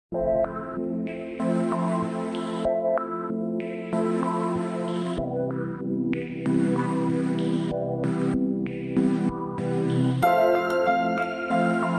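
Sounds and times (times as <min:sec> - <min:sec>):
curio music: 0:00.1 - 0:11.9.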